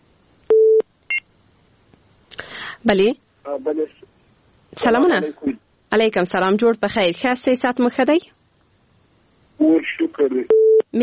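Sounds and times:
faint hiss: 0:00.0 - 0:11.0
speech: 0:02.8 - 0:04.2, 0:04.8 - 0:08.4, 0:09.6 - 0:11.0
short higher dual-tone telephone beep: 0:10.5 - 0:10.8.

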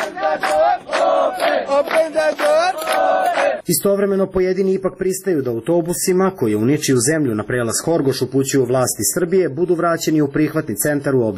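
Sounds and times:
crowd of refugees chanting at border gate: 0:00.0 - 0:03.6
speech: 0:03.7 - 0:11.3.

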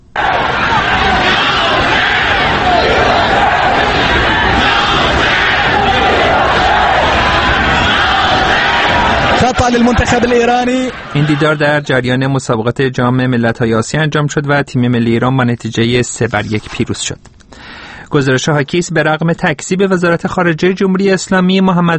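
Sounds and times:
shouted bursts from the stadium crowd: 0:00.0 - 0:11.9
large stadium crowd roaring and chanting political slogans: 0:00.1 - 0:11.6
speech: 0:09.7 - 0:17.4, 0:18.1 - 0:21.9.

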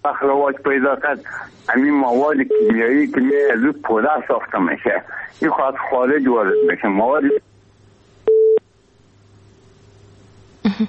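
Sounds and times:
speech: 0:00.0 - 0:07.5
telephone busy tone after a phone call is cut off: 0:08.3 - 0:08.6.

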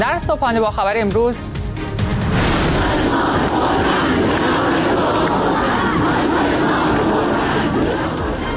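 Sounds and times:
speech: 0:00.1 - 0:01.6
crowd chanting anti-government slogans: 0:02.5 - 0:08.5.

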